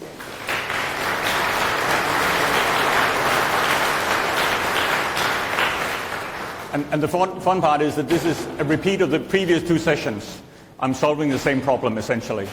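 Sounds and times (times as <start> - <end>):
audience applause: 0.0 - 6.8
speech: 6.8 - 12.5.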